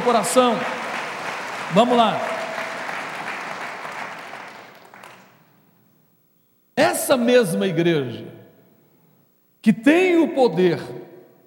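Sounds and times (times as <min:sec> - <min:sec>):
speech: 0:00.0 - 0:00.8, 0:01.7 - 0:02.3, 0:06.8 - 0:08.4, 0:09.6 - 0:11.0
audience applauding loudly: 0:00.0 - 0:05.5.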